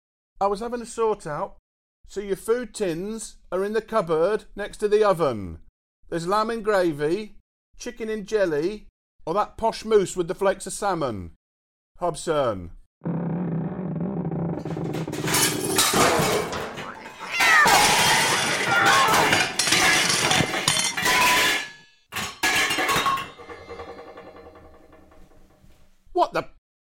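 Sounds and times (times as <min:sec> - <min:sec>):
speech: 0:00.4 - 0:11.4, 0:12.0 - 0:13.1
cooker hood collapsing with a crash: 0:13.9 - 0:25.7
clattering and clinking debris: 0:14.6 - 0:25.6
meow-like cry: 0:16.8 - 0:19.2.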